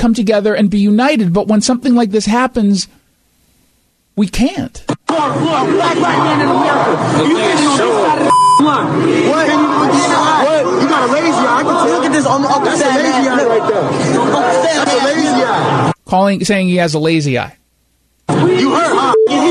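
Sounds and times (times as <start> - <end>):
speech: 0.0 - 3.0, 4.2 - 17.6, 18.4 - 19.4
loud crowd chatter with many voices talking and shouting: 5.0 - 16.0, 18.3 - 19.4
censorship bleep over profanity: 8.2 - 8.7, 19.1 - 19.4.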